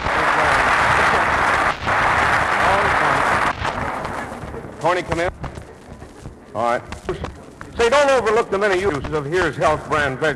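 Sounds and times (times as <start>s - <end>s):
applause: 0.0s - 5.4s
speech: 4.8s - 5.4s, 6.6s - 10.3s.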